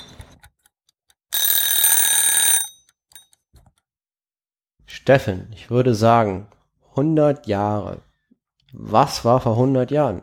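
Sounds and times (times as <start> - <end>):
alarm clock ringing: 1.3 - 3.3
speech: 5.0 - 8.1, 8.7 - 10.2.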